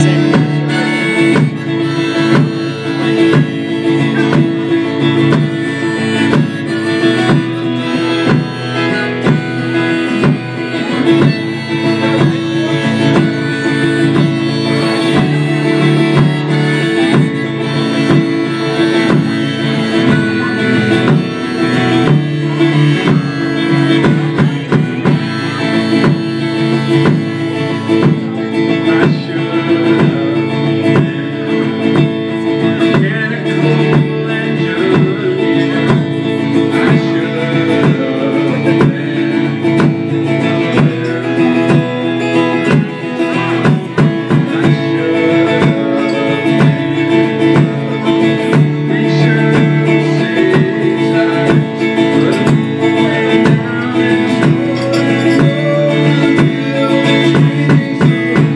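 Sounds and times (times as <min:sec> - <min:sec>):
local artist playing acoustic music at a party: 0:00.0 - 0:58.5.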